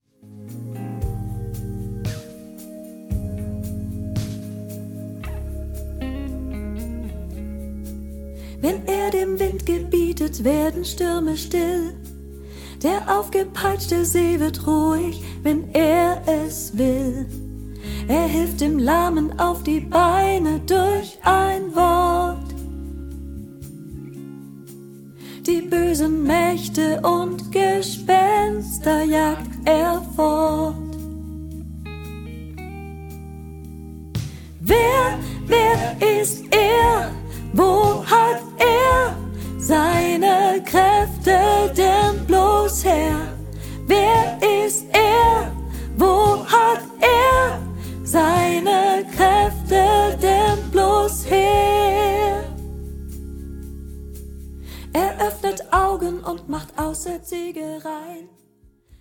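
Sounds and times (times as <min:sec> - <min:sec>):
soprano learning track: 0:08.4 - 0:23.0, 0:25.2 - 0:31.2, 0:34.6 - 0:53.0, 0:54.8 - 0:58.4.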